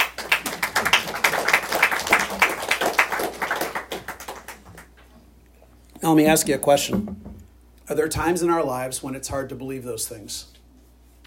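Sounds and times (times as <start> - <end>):
audience clapping: 0.0 - 5.0
speech: 6.0 - 7.3, 7.9 - 10.6.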